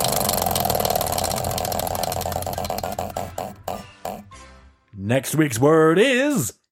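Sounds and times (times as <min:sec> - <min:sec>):
spinning wheel of words ticking: 0:00.0 - 0:04.2
speech: 0:05.1 - 0:06.6.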